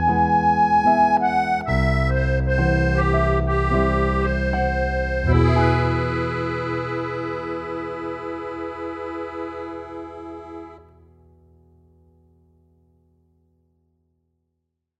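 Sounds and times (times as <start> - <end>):
accordion: 0.0 - 11.0.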